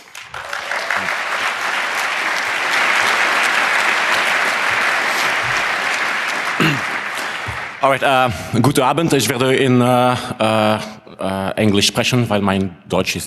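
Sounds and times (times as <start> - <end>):
crowd applause: 0.0 - 8.8
speech: 7.8 - 13.2.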